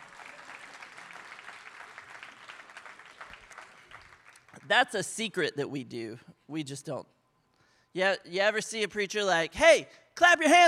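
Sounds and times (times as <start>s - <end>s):
audience clapping hands: 0.0s - 5.0s
speech: 4.7s - 7.2s, 7.9s - 10.6s.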